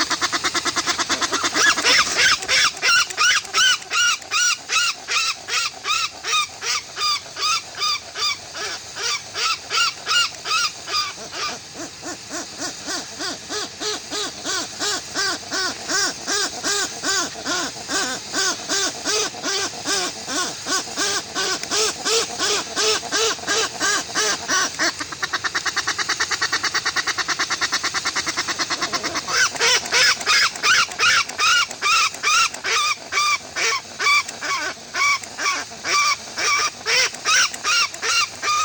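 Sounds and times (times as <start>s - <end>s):
Westland black petrel song: 0.0s - 38.6s.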